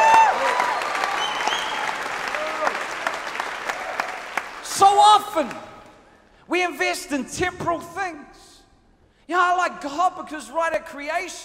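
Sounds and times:
audience voices whooping: 0.0s - 4.4s
audience applauding loudly: 0.0s - 5.5s
speech: 5.4s - 5.7s, 6.5s - 8.5s, 9.3s - 11.4s.

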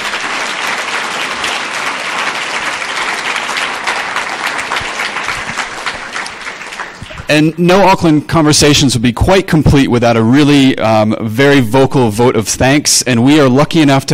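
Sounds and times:
audience round of applause: 0.0s - 7.7s
speech: 7.3s - 14.1s.

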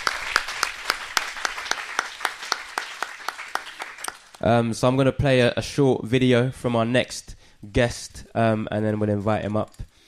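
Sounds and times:
audience applause: 0.0s - 4.4s
speech: 4.4s - 9.9s.

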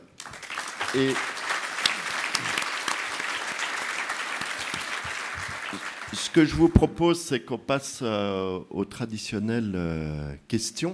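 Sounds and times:
audience applause: 0.2s - 6.7s
speech: 0.9s - 1.3s, 5.7s - 10.9s.

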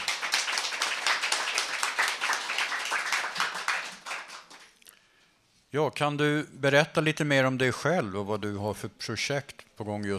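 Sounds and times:
warm applause: 0.0s - 4.8s
speech: 5.7s - 10.1s.

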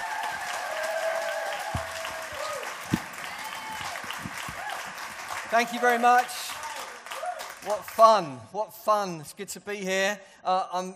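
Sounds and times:
church service audience clapping to welcome a guest speaker: 0.0s - 8.4s
speech: 5.5s - 6.4s, 7.6s - 10.9s.

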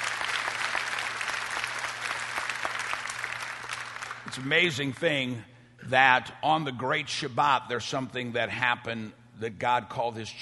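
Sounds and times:
audience applause: 0.0s - 4.4s
speech: 4.4s - 10.4s.

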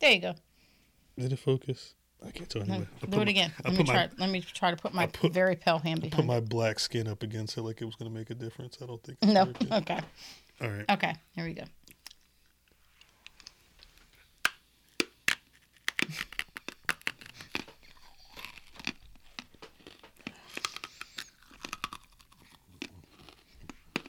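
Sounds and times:
speech: 0.0s - 0.5s, 1.2s - 11.8s
laughter: 2.9s - 4.2s
chewing hard candy that tastes like a Tootsie Roll: 14.9s - 24.0s.

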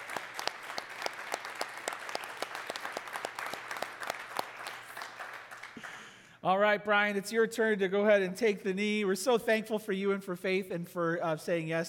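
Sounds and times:
audience applause: 0.0s - 6.2s
speech: 6.4s - 11.8s.

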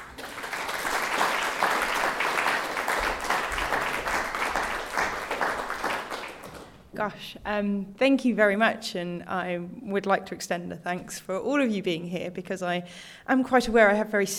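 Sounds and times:
audience applause welcoming a planetary scientist to give a lecture: 0.0s - 6.8s
speech: 7.0s - 14.3s.

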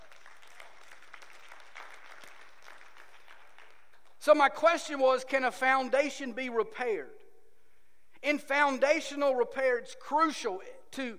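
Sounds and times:
audience clapping: 0.0s - 4.2s
speech: 4.2s - 7.2s, 8.2s - 11.1s.

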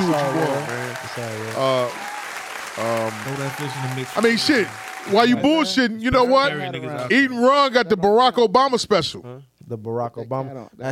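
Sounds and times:
hand claps: 0.0s - 5.2s
speech: 0.1s - 2.0s, 2.8s - 10.8s.

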